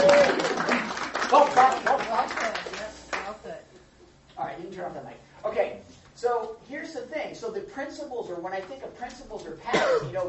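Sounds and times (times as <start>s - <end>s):
round of applause: 0.0s - 3.3s.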